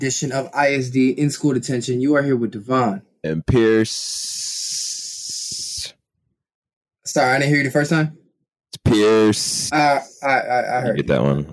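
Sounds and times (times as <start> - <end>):
speech: 0.0 - 4.4, 7.1 - 8.2, 8.9 - 11.5
person hissing like a snake: 3.9 - 5.9.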